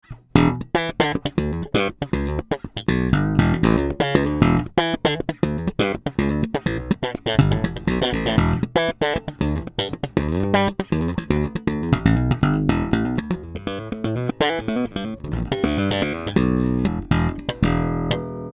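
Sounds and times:
slap playing on JB2 bridge pickup: 0.0 - 18.5.

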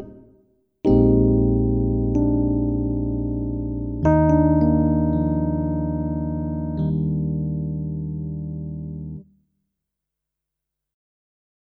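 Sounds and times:
electric piano: 0.9 - 9.2.

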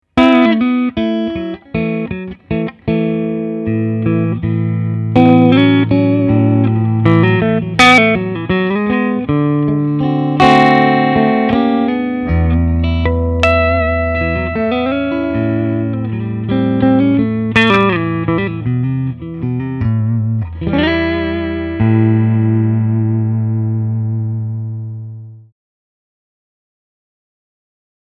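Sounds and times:
Music Man 112 RD amplified instrument: 0.2 - 25.5.

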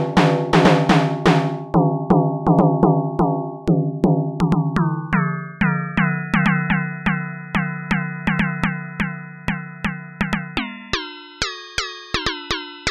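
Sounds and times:
tenor drum engine: 0.0 - 10.8.

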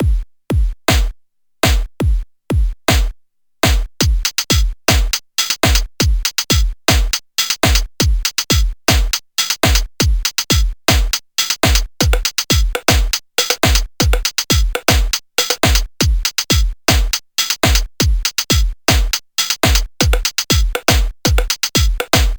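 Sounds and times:
Soulsby Oscidrum electronic drum set: 0.0 - 22.3.

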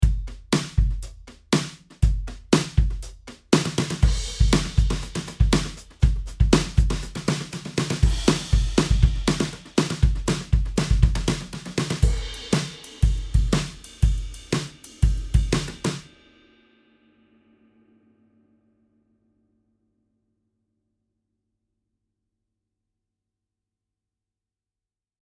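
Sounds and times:
Logic Pro X brush drummer playing roots beat: 0.0 - 16.1.

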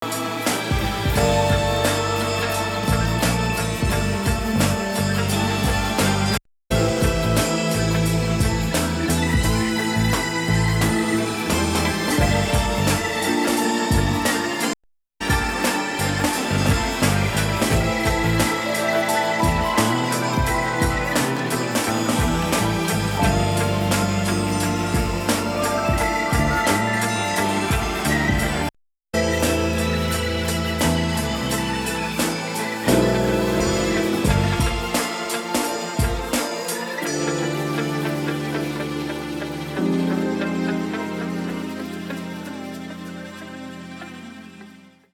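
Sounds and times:
retro soul music: 0.0 - 45.0.

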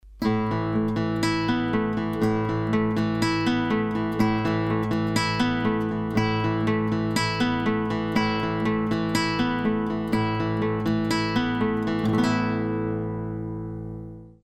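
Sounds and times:
guitar with compression and EQ: 0.0 - 14.4.

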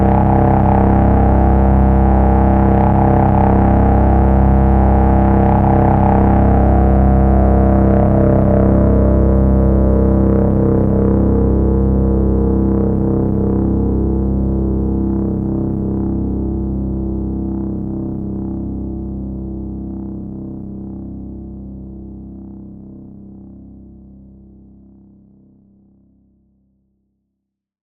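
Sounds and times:
MS-20 synthesizer noise feedback drone: 0.0 - 17.9.

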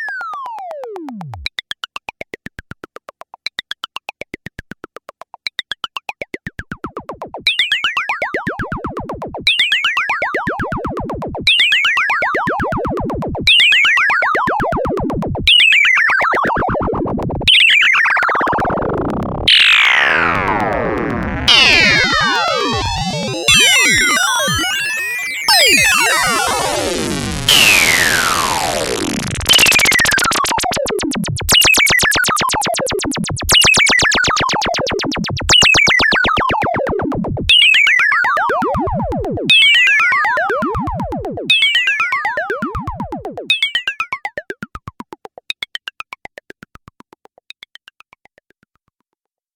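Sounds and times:
ring-modulated synthesizer: 5.9 - 48.4.

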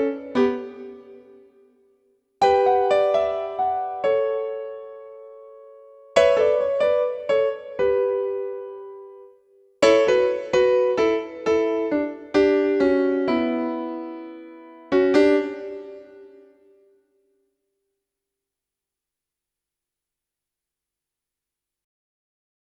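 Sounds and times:
Juno-DS88 concert grand piano: 0.0 - 1.7, 2.4 - 16.7.

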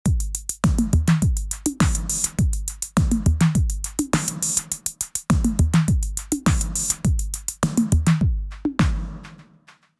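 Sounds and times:
basic drum kit: 0.0 - 9.8.

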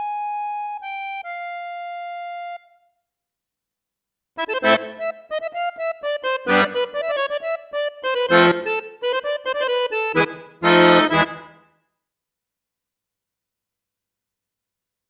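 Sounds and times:
accordion: 0.0 - 2.8, 4.4 - 11.7.

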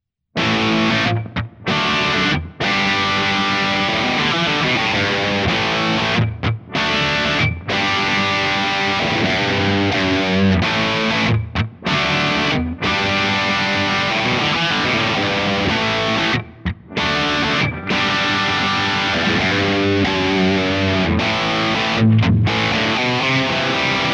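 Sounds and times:
digital Marshall guitar sounds: 0.4 - 24.1.

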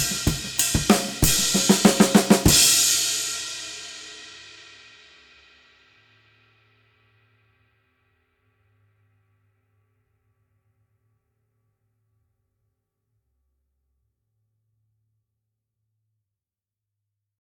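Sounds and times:
transition ride cymbal: 0.0 - 4.3.

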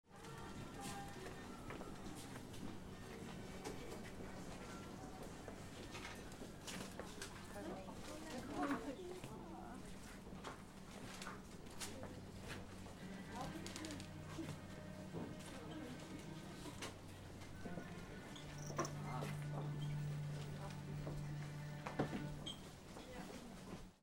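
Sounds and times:
department store ambience: 0.1 - 24.0.

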